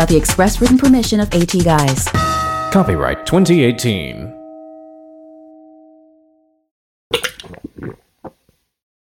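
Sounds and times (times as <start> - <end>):
speech: 0.0 - 4.4
steady electronic chime tone: 2.2 - 6.6
person gulping water from a glass: 7.1 - 8.5.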